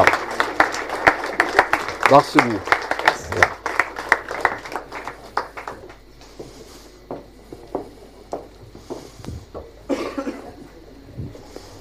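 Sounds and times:
audience applauding: 0.0 - 6.4
speech: 2.1 - 2.7, 3.4 - 3.6.

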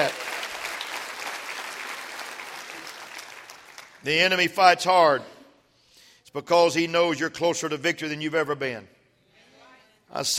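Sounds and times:
audience clapping hands: 0.0 - 4.4
speech: 4.0 - 5.3, 6.3 - 9.0, 10.1 - 10.3.

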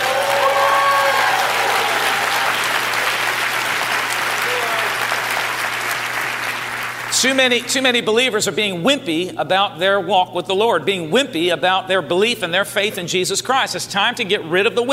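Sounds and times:
crowd clapping: 0.0 - 7.7
speech: 7.2 - 14.9.

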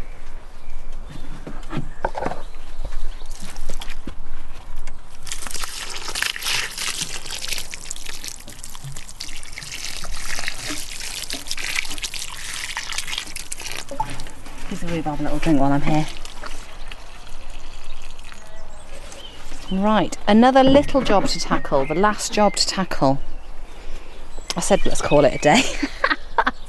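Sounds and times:
light rustling: 1.1 - 19.8
water pouring onto garden plants: 5.2 - 19.7
speech: 14.9 - 16.1, 19.7 - 23.3, 24.6 - 26.0.

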